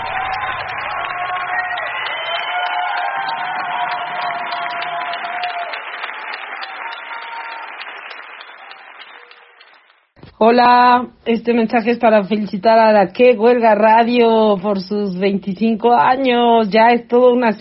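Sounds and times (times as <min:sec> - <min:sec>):
audience applause: 0:00.0 - 0:10.2
speech: 0:10.4 - 0:17.5.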